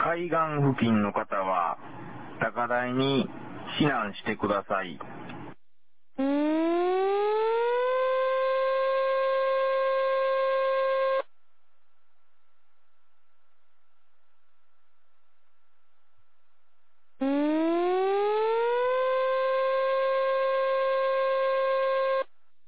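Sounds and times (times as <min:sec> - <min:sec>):
speech: 0:00.2 - 0:05.2
tsunami warning siren wailing: 0:06.2 - 0:11.3, 0:17.2 - 0:22.3.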